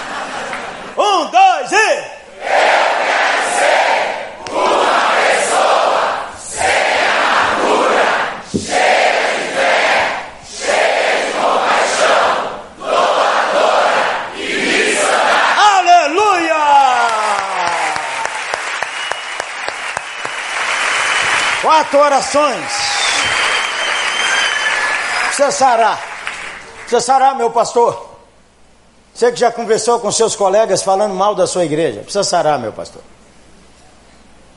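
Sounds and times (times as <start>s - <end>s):
laughter: 0.0s - 1.0s
large crowd shouting in unison: 2.3s - 18.3s
scattered cheering: 15.6s - 26.7s
speech: 21.9s - 23.3s, 25.4s - 26.1s, 26.9s - 28.1s, 29.2s - 33.2s.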